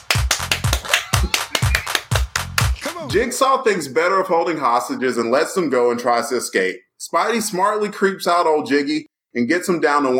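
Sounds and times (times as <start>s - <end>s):
hands clapping: 0.0s - 3.2s
speech: 3.0s - 10.1s.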